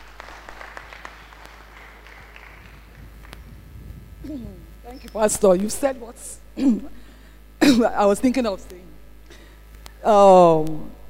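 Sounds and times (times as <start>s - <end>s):
audience clapping: 0.0s - 4.0s
speech: 4.3s - 7.0s, 7.7s - 8.8s, 10.0s - 11.0s.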